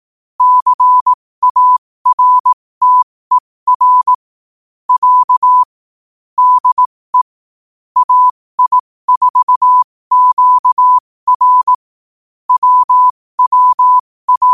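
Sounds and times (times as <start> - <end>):
morse code at 5 wpm: 0.4 - 4.2, 4.9 - 5.7, 6.4 - 7.3, 8.0 - 11.8, 12.5 - 14.5.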